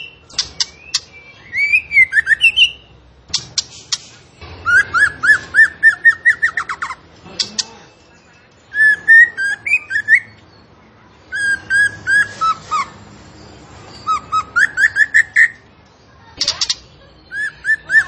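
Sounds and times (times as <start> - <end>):
zebra finch singing vigorously: 0.0 - 18.0.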